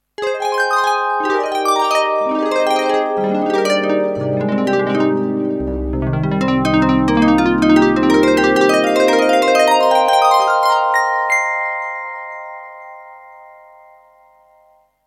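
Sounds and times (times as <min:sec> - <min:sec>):
TX7 synthesizer double harp: 0:00.2 - 0:12.8.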